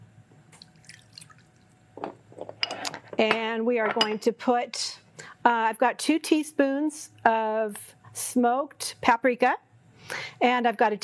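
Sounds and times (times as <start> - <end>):
water poured into a bowl of sauce: 0.6 - 1.8
speech: 3.2 - 9.7, 10.4 - 11.0.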